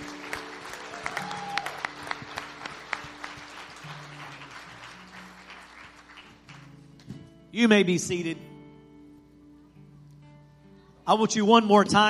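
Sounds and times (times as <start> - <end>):
audience clapping: 0.0 - 7.0
speech: 7.6 - 8.5, 11.1 - 12.0.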